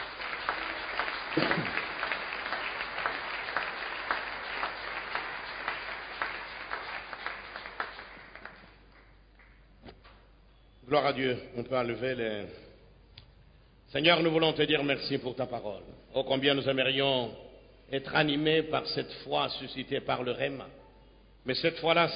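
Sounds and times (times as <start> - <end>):
church congregation applauding to acclaim the Lord: 0.0 - 9.8
speech: 11.0 - 12.7, 13.9 - 20.8, 21.4 - 22.1.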